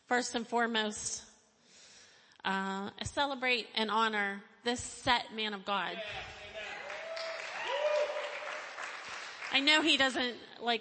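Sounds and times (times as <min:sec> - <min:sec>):
speech: 0:00.1 - 0:01.3, 0:02.4 - 0:06.4, 0:09.5 - 0:10.8
church audience clapping: 0:06.2 - 0:10.2.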